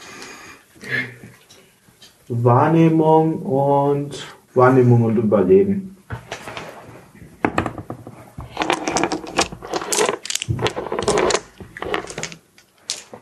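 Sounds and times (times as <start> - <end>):
speech: 2.3 - 5.9
dice being picked up and rolled: 7.5 - 13.1.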